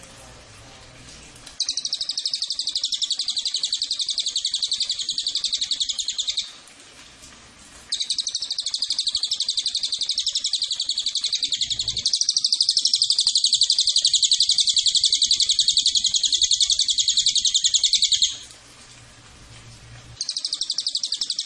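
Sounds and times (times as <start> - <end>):
cililin giving a fast high dry pulsed trill: 1.6 - 6.6, 7.9 - 18.4, 20.2 - 21.4.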